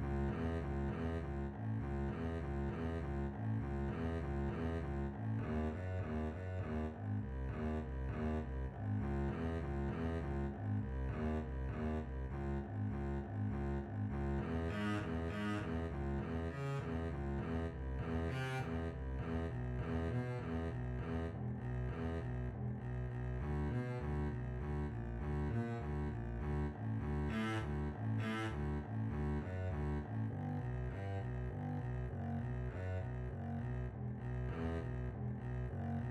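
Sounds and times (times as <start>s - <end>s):
double bass duet: 0.0s - 36.0s.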